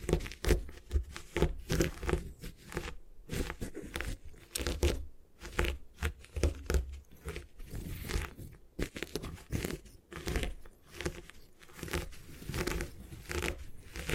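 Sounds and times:
gym chalk crunching and crumbling being destroyed: 0:00.0 - 0:14.1.

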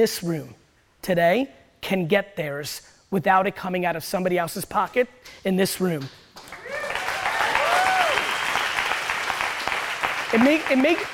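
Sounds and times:
speech: 0:00.0 - 0:06.5, 0:10.3 - 0:11.1
audience clapping and applause: 0:06.4 - 0:11.1.

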